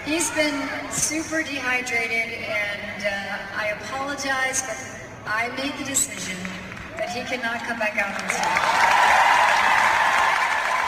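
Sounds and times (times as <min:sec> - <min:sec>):
speech: 0:00.1 - 0:09.2
live-show audience applause: 0:08.1 - 0:10.8.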